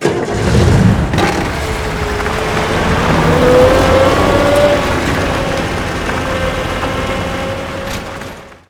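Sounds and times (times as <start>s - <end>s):
truck: 0.0s - 8.6s.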